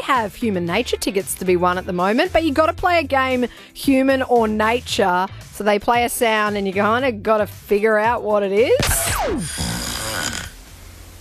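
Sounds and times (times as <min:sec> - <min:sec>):
speech: 0:00.1 - 0:09.7
person snoring while asleep: 0:09.3 - 0:10.6.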